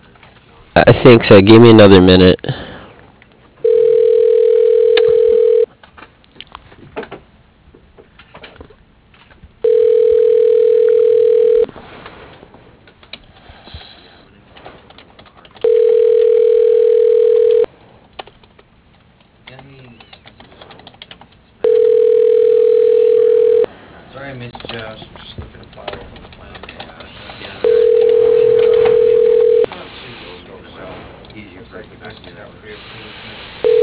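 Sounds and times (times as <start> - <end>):
speech: 0.8 - 2.6
faint clatter: 3.2 - 23.6, 24.2 - 32.9
telephone ringing tone: 3.6 - 5.7, 9.6 - 11.7, 15.6 - 17.7, 21.6 - 23.7, 27.6 - 29.7, 33.6 - 33.8.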